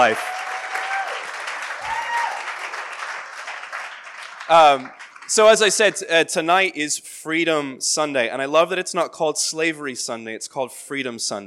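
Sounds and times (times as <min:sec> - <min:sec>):
speech: 0:00.0 - 0:00.3, 0:04.5 - 0:11.4
audience applause: 0:00.0 - 0:06.1.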